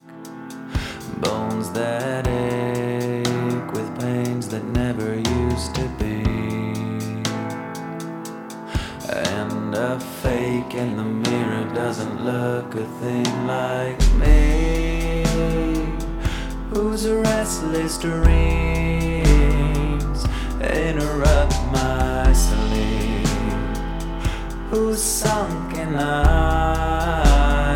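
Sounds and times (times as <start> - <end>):
person singing softly: 1.0 - 7.7, 9.0 - 27.7.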